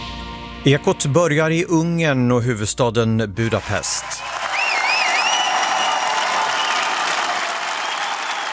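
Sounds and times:
speech: 0.6 - 4.3
crowd cheering outside parliament: 3.6 - 8.5.

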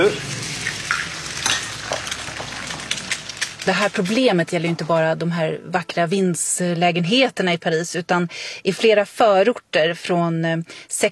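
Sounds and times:
speech: 0.0 - 0.3, 3.6 - 11.1
eggs and pancakes sizzling in a pan: 0.0 - 5.0.

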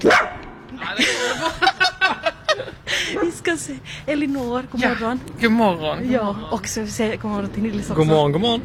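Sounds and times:
pet dog barking: 0.0 - 0.4
laughter: 0.8 - 3.3
speech: 3.7 - 8.6.

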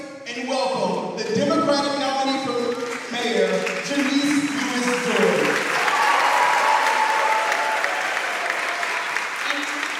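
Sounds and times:
speech: 0.4 - 1.9
applause: 2.5 - 9.9
cheering: 4.2 - 9.9.

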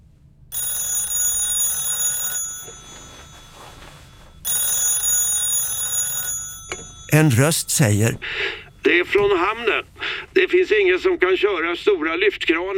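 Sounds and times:
telephone ringing: 0.6 - 3.8, 4.5 - 8.2
speech: 7.1 - 12.7.

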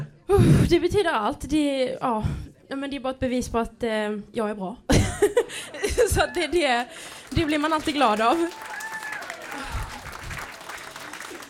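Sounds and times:
speech: 0.3 - 8.7
crowd cheering and applauding: 6.0 - 11.4.

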